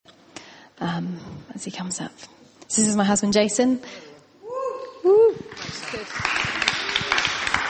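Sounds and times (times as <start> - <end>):
speech: 0.8 - 4.1, 5.0 - 6.6
audience clapping as a man is introduced: 5.5 - 7.6.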